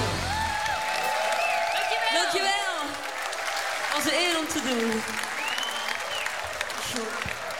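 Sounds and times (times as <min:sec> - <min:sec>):
audience clapping for stage performers: 0:00.0 - 0:07.5
speech: 0:04.5 - 0:05.2
whistle: 0:05.4 - 0:06.2.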